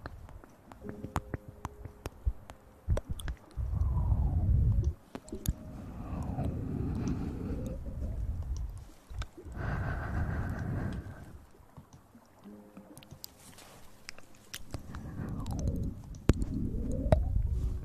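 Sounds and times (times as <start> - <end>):
intense wet low mouth smacking and squelching: 0.0 - 9.6, 14.0 - 17.4
sharp clicks and pops: 0.0 - 13.4, 14.0 - 17.8
sweeping tones gliding up and down: 0.8 - 11.5, 14.6 - 17.8.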